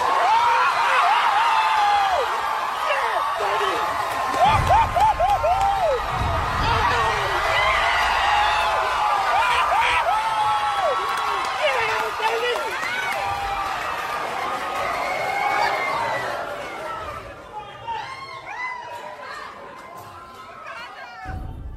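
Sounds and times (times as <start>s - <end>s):
movie theater audience shouting and cheering at Marvel heroes arriving on screen: 0.0s - 21.7s
movie theater audience laughing: 4.3s - 6.0s.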